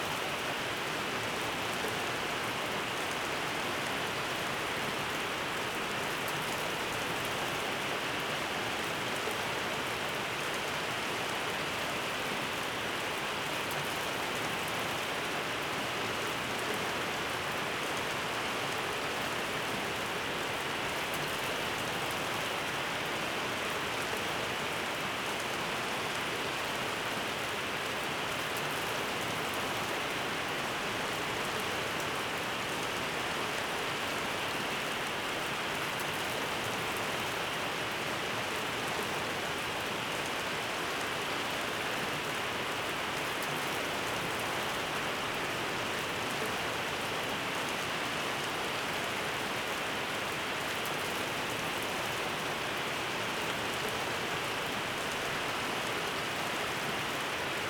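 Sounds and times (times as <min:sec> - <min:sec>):
rainy night in Oklahoma City: 0:00.0 - 0:57.6.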